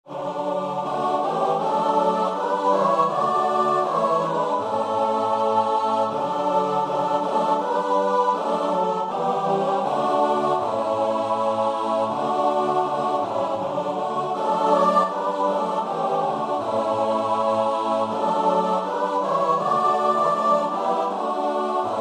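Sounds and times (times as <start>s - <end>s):
choir singing: 0.1s - 21.9s.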